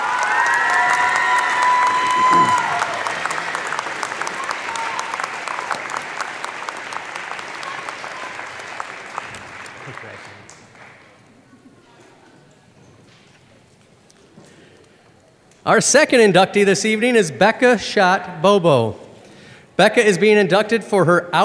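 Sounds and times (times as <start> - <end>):
audience applause at a sports hall-of-fame induction ceremony: 0.0 - 11.5
speech: 15.7 - 19.0, 19.8 - 21.4.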